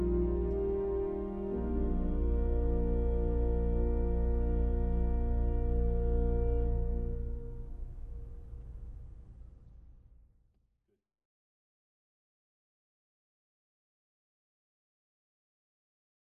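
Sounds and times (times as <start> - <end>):
choir singing a Christmas carol: 0.0 - 7.2.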